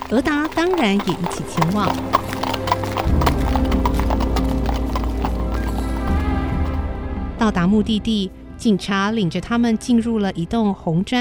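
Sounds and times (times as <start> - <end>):
horse hooves of a horse-drawn carriage driving off: 0.0 - 7.0
speech: 0.1 - 2.3, 7.4 - 11.2.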